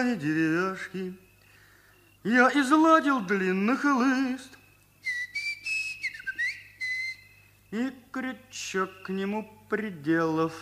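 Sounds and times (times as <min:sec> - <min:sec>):
speech: 0:00.0 - 0:01.2, 0:02.2 - 0:04.6, 0:07.7 - 0:10.6
faint low hum: 0:00.0 - 0:10.6
person whistling a long high melodic line: 0:04.5 - 0:08.0.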